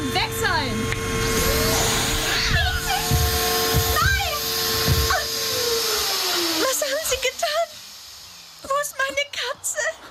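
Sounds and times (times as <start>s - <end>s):
vacuum cleaner running at full power: 0.0s - 9.5s.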